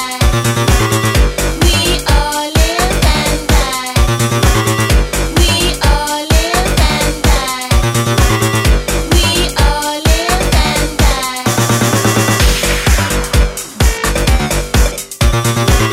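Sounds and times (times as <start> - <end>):
Dirty South club music: 0.0 - 15.9.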